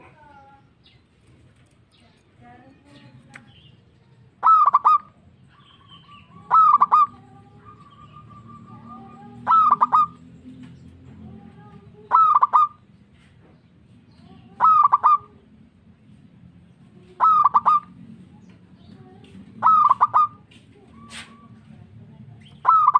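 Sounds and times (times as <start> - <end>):
zebra dove cooing: 4.4 - 10.3, 12.0 - 12.8, 14.4 - 15.4, 17.0 - 18.1, 19.6 - 21.6, 22.5 - 22.9.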